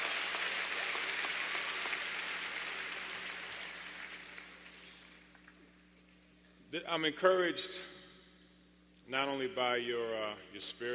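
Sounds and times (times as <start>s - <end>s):
crowd applause: 0.0s - 4.7s
speech: 6.7s - 8.0s, 9.1s - 10.9s.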